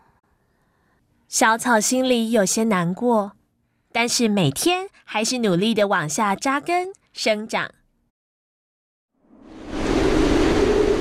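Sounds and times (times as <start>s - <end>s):
speech: 1.3s - 3.4s, 4.0s - 7.8s
howling typhoon wind with heavy rain: 9.4s - 10.9s.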